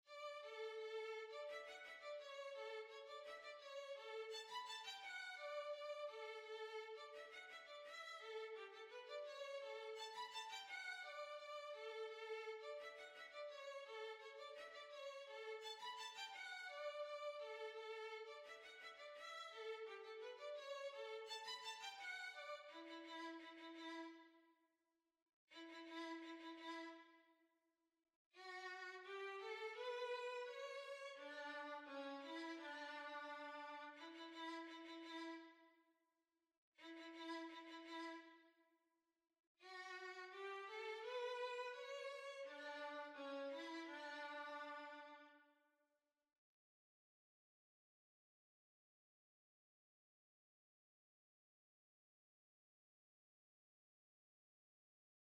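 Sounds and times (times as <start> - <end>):
violin: 0.0 - 24.3, 25.5 - 27.2, 28.4 - 35.6, 36.8 - 38.4, 39.6 - 45.4.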